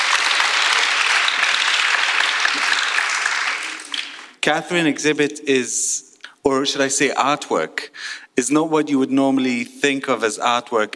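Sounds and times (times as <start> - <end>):
audience applauding a guest artist at an exhibition event: 0.0 - 4.4
speech: 4.4 - 10.9.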